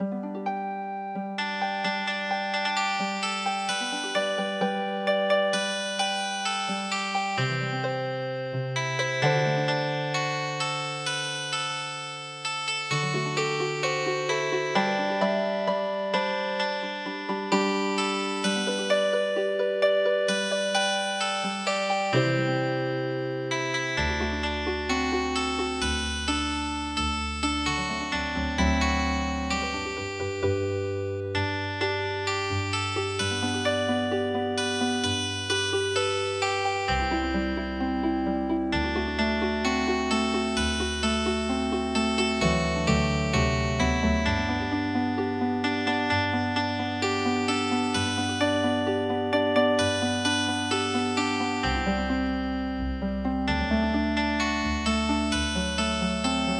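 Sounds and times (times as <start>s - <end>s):
traditional healing harp music: 0.0s - 56.5s.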